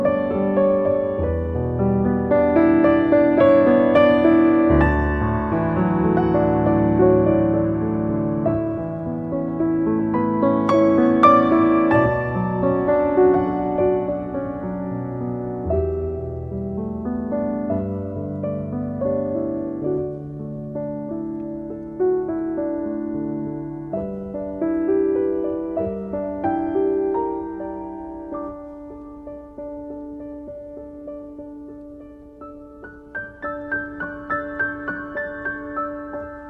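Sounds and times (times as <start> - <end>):
piano piece: 0.0 - 36.4.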